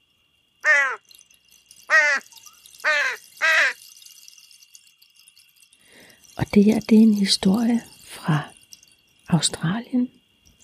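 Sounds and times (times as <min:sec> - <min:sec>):
harsh rasping crow caws: 0:00.6 - 0:01.1, 0:01.9 - 0:03.9
speech: 0:06.5 - 0:08.5, 0:09.3 - 0:10.2.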